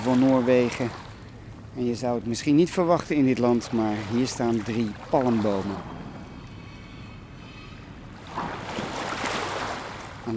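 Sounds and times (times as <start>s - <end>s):
speech: 0.0s - 1.0s, 1.8s - 6.0s
sea waves at a beach: 0.0s - 6.5s, 7.8s - 10.3s.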